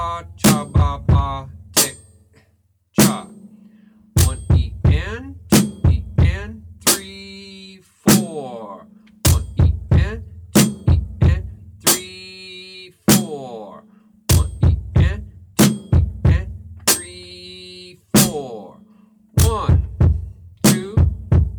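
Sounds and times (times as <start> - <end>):
drum beat: 0.0 - 2.2, 3.0 - 3.6, 4.2 - 7.4, 8.1 - 8.6, 9.2 - 12.2, 13.1 - 13.5, 14.3 - 17.6, 18.2 - 18.6, 19.4 - 21.5.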